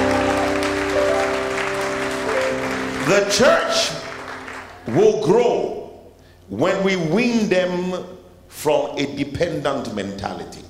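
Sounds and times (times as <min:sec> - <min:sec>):
sustained musical tones: 0:00.0 - 0:04.8
large crowd clapping: 0:00.0 - 0:05.3
speech: 0:03.1 - 0:04.0, 0:04.8 - 0:05.8, 0:06.5 - 0:10.6.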